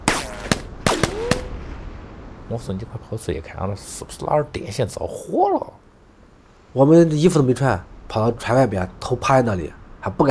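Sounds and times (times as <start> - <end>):
gunshots: 0.0 - 1.6
speech: 2.5 - 5.8, 6.8 - 10.2.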